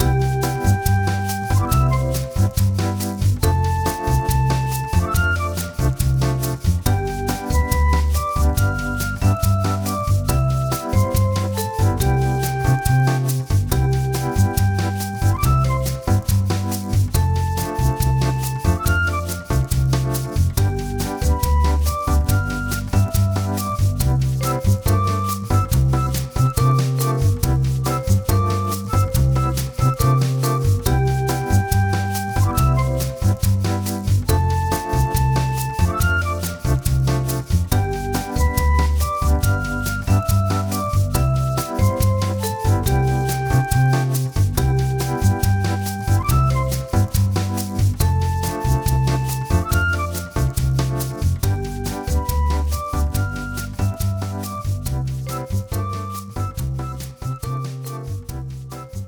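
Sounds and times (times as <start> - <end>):
lobby music: 0.0 - 59.0.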